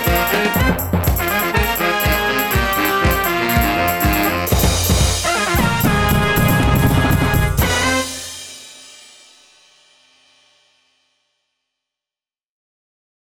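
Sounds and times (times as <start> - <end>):
hot brass instruments playing: 0.0 - 8.7.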